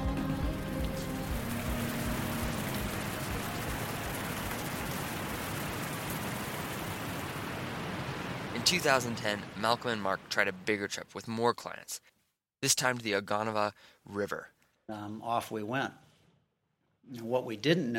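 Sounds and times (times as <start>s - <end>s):
heavy storm rain: 0.1s - 10.9s
speech: 8.7s - 16.0s, 17.1s - 17.9s.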